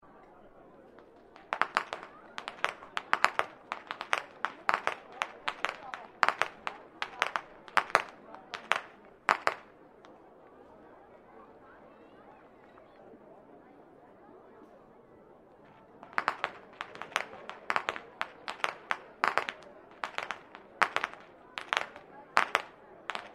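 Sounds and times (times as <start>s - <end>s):
youth whip cracking: 1.4s - 9.6s, 16.1s - 23.3s.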